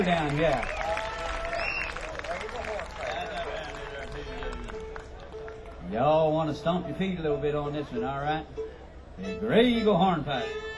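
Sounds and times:
speech: 0:00.0 - 0:00.8, 0:05.9 - 0:10.7
audience applause for fiddle player: 0:00.0 - 0:05.8
whoops: 0:00.7 - 0:02.1
sharp whistles: 0:01.5 - 0:02.0.

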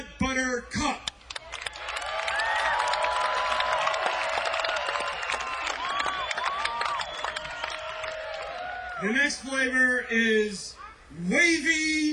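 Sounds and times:
speech: 0:00.0 - 0:01.0, 0:09.3 - 0:12.1
audience applause and cheering: 0:01.4 - 0:09.1.

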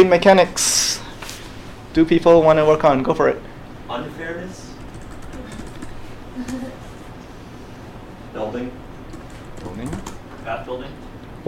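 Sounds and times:
speech: 0:00.0 - 0:01.0, 0:02.0 - 0:04.7, 0:08.4 - 0:08.8, 0:09.7 - 0:11.4
typing on a computer keyboard: 0:04.8 - 0:06.6, 0:09.1 - 0:10.2.

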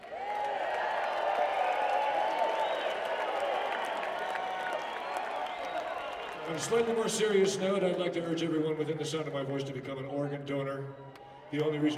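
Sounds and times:
faint cheers and whoops: 0:00.0 - 0:06.8
crowd applause: 0:00.0 - 0:08.6
speech: 0:06.5 - 0:11.9.

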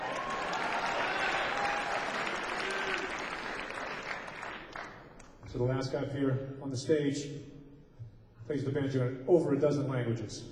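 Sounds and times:
audience applause: 0:00.0 - 0:05.1
speech: 0:05.5 - 0:07.6, 0:08.5 - 0:10.5.

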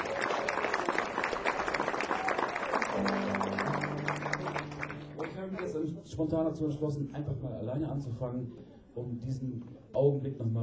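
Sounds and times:
audience applause: 0:00.0 - 0:06.0
speech: 0:06.1 - 0:10.6.

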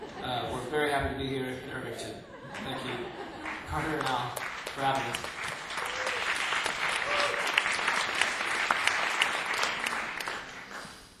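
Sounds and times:
laughter: 0:00.0 - 0:00.7, 0:02.2 - 0:04.2
speech: 0:01.0 - 0:05.4
half-hearted audience applause: 0:02.5 - 0:11.1.

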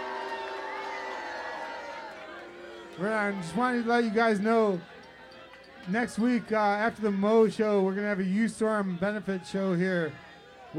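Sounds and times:
crowd cheering and whooping: 0:00.0 - 0:06.6
speech: 0:03.0 - 0:04.9, 0:05.8 - 0:10.7.

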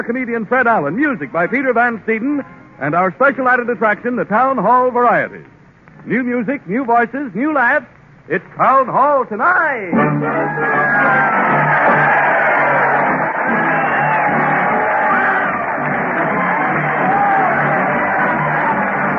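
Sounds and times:
speech: 0:00.0 - 0:12.1
crowd cheering: 0:10.0 - 0:19.1.

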